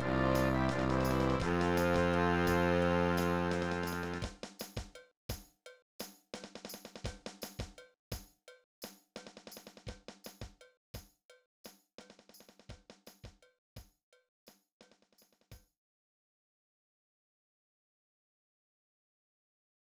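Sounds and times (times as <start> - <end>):
low tuba playing a wedding march: 0.0 - 4.3.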